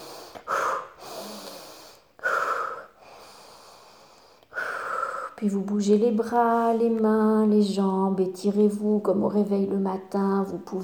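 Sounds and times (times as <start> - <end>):
deep inhale then exhale: 0.0 - 5.4
speech: 5.4 - 10.8.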